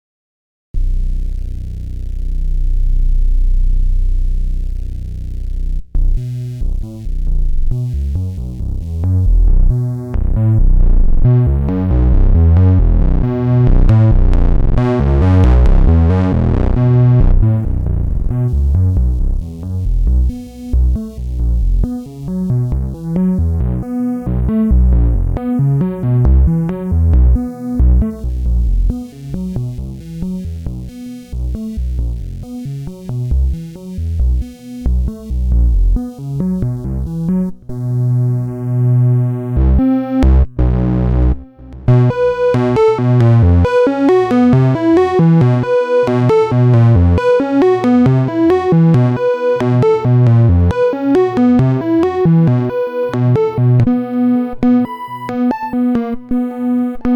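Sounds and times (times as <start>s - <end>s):
ARP 2600 V synthesizer: 0.8s - 57.1s.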